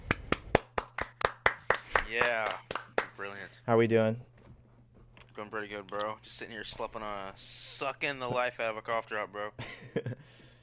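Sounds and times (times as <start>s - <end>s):
hand claps to welcome a guest: 0.0s - 3.2s
speech: 2.1s - 2.7s, 3.4s - 4.3s, 5.4s - 10.4s.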